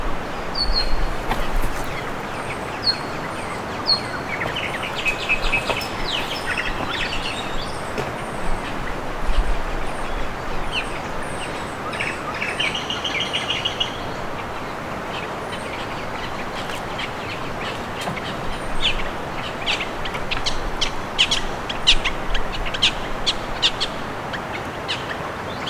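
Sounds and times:
low background noise: 0.0 - 25.6
birds chirping: 0.2 - 20.6.

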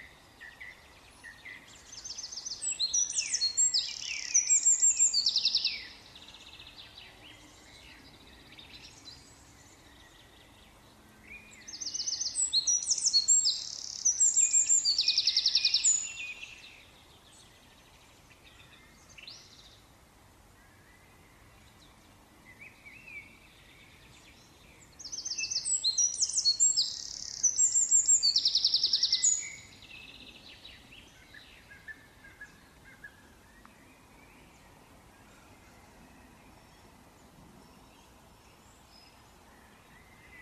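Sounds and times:
Eurasian wren singing trills: 0.0 - 10.4, 11.4 - 16.9, 24.8 - 32.9
songbird chorus: 0.0 - 40.4.

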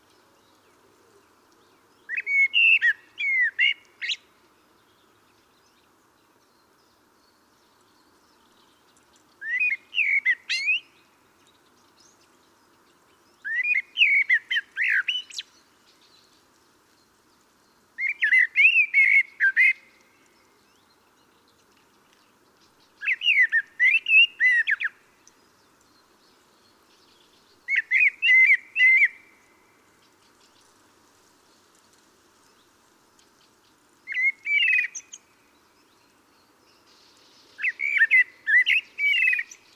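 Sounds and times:
common blackbird singing: 1.7 - 4.3, 6.5 - 12.2, 13.4 - 16.4, 18.0 - 21.5, 22.6 - 29.4, 34.1 - 39.7.

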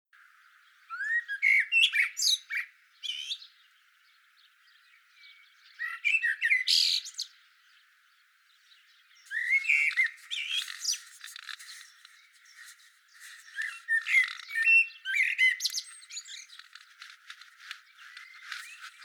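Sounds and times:
common blackbird singing: 0.2 - 19.0
constant faint crackle: 9.3 - 14.6, 15.6 - 19.0.

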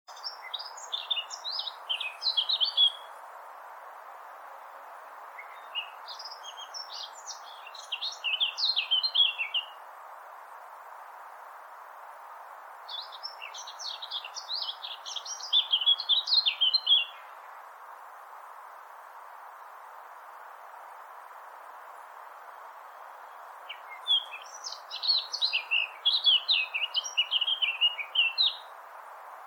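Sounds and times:
Eurasian blackcap song: 0.1 - 29.4
steady hiss: 0.1 - 29.4.

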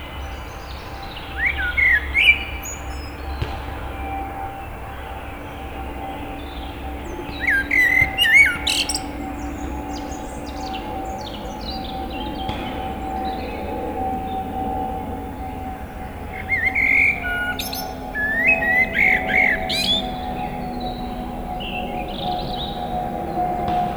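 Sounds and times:
constant mechanical hum: 0.0 - 23.9
Eurasian blackbird calls: 0.4 - 23.9.

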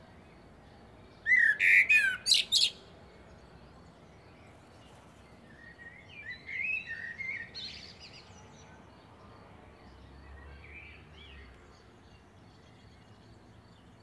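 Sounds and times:
Common blackbird warbling: 1.3 - 2.8.

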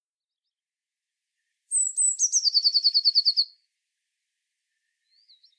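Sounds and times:
Eurasian blue tit singing: 1.7 - 3.5.

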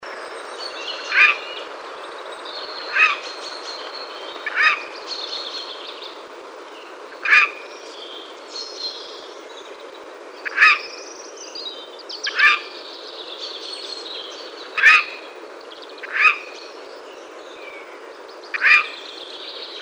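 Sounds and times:
Eurasian jay grating nasal calls: 1.1 - 1.5, 2.9 - 3.3, 4.4 - 4.9, 7.2 - 7.7, 10.4 - 10.9, 12.3 - 12.8, 14.8 - 15.2, 18.6 - 19.0.

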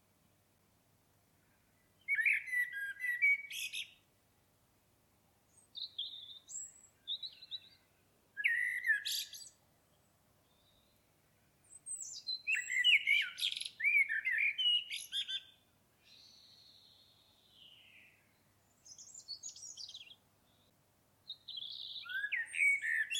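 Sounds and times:
common blackbird singing warbled phrases: 2.0 - 4.0, 5.5 - 9.6, 11.7 - 20.7, 21.3 - 23.1.

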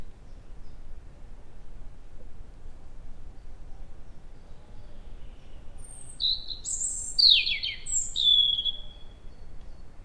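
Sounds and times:
European robin Erithacus rubecula singing high thin warbling phrases: 4.1 - 10.0.

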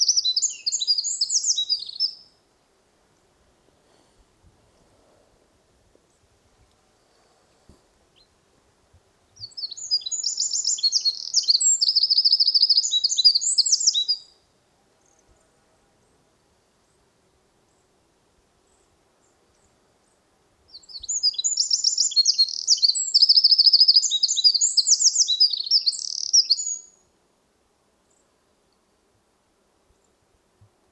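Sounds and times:
Eurasian wren trilling song: 0.0 - 2.3, 9.4 - 14.3, 20.7 - 27.0.

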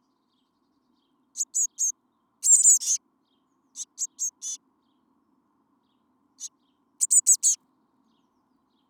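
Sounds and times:
Eurasian blue tit Cyanistes caeruleus calling: 1.4 - 3.0, 3.8 - 4.6, 7.0 - 7.6.

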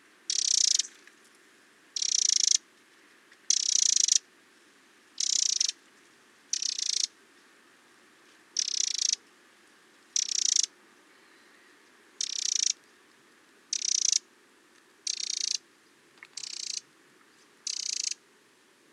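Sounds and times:
Eurasian wren rattling calls: 0.3 - 1.0, 2.0 - 2.6, 3.5 - 4.2, 5.2 - 5.8, 6.5 - 7.1, 8.6 - 9.2, 10.2 - 10.7, 12.2 - 12.8, 13.7 - 14.2, 15.0 - 15.6, 16.4 - 16.8, 17.6 - 18.2.

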